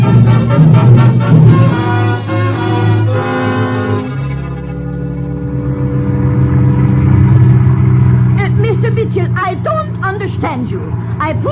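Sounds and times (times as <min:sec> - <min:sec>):
car engine revving and pulling away: 0:00.0 - 0:11.5.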